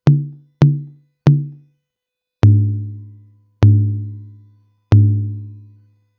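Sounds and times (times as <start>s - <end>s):
music beat: 0.0s - 1.6s, 3.6s - 4.2s, 5.0s - 5.4s.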